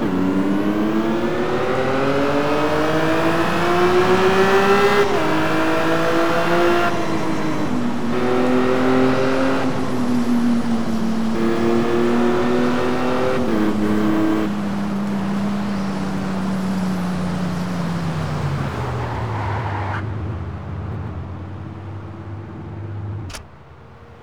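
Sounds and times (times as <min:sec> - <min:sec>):
Lamborghini Gallardo coupe engine: 0:00.0 - 0:24.2.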